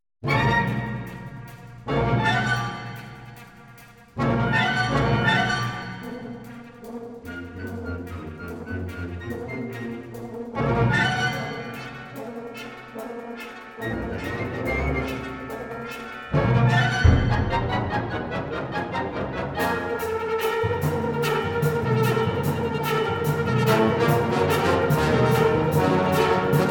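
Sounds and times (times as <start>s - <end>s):
wind band playing: 0.2s - 26.6s.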